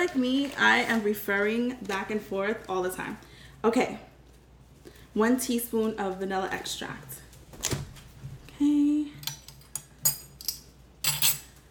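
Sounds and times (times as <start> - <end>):
speech: 0.0 - 4.1, 5.2 - 7.7, 8.6 - 9.2
utensil clinking against a bowl while vanilla extract is mixed into batter: 9.2 - 11.6.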